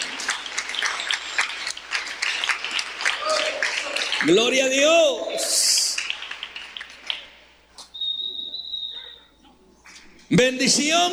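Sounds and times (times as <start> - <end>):
audience applauding: 0.0 - 4.7, 5.3 - 7.4
speech: 4.2 - 5.6, 10.3 - 11.1.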